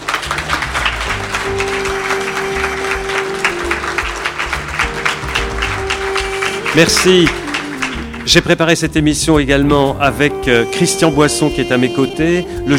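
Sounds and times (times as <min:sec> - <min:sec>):
audience applause: 0:00.0 - 0:08.7
speech: 0:06.8 - 0:07.4, 0:08.3 - 0:12.7.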